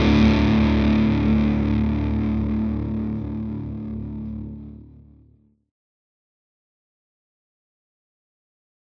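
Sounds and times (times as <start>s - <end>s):
dual recto guitar amp sound with high-pass: 0.0s - 5.4s.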